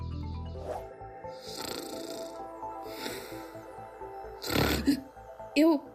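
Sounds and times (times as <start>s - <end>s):
human snoring ending in a snort: 1.3s - 5.1s.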